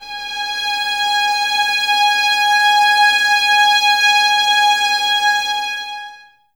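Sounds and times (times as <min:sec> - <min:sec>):
string ensemble: 0:00.0 - 0:06.3
violins playing G#5: 0:00.0 - 0:06.4.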